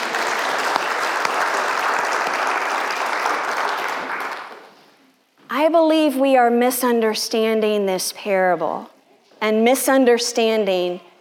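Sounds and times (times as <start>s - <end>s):
audience applause: 0.0s - 4.8s
speech: 5.7s - 11.1s.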